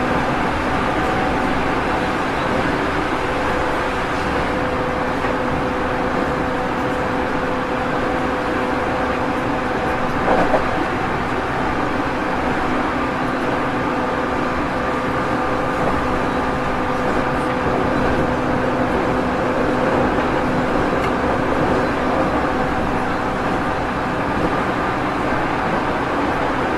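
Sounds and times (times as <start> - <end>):
205 series train on the Musashino line: 0.0 - 26.7.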